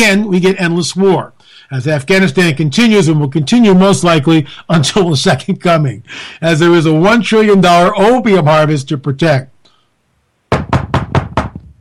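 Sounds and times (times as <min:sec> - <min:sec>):
speech: 0:00.0 - 0:09.5
knocking on a door: 0:10.5 - 0:11.7.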